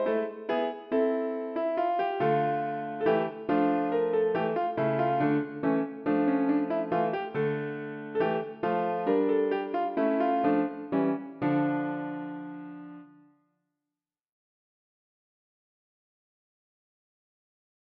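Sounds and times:
piano piece: 0.0s - 13.3s.

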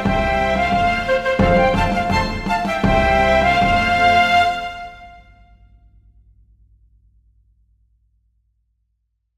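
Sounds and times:
march for flutes, strings and drums: 0.0s - 5.5s.

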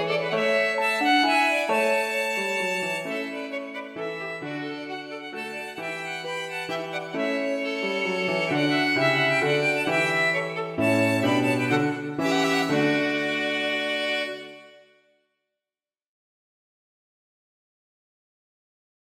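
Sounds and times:
minuet for two violins and piano: 0.0s - 14.9s.

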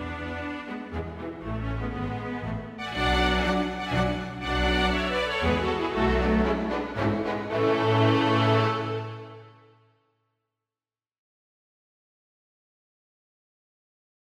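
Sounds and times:
string quintet playing a minuet: 0.0s - 9.7s.

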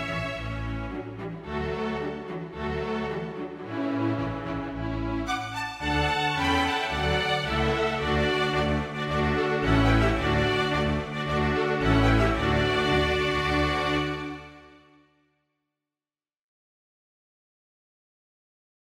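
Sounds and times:
string quintet playing a march: 0.0s - 14.8s.

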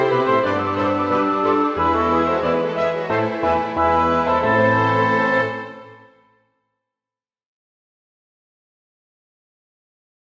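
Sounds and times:
large ensemble playing a rigadoon: 0.0s - 6.2s.

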